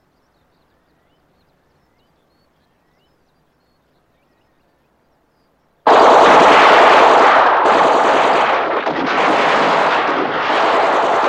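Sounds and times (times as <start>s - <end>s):
machine gun fire: 5.9s - 11.2s.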